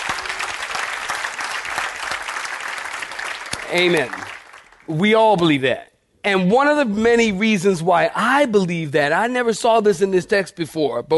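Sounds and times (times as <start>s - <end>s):
audience applause: 0.0s - 4.9s
speech: 3.7s - 4.2s, 4.9s - 11.1s.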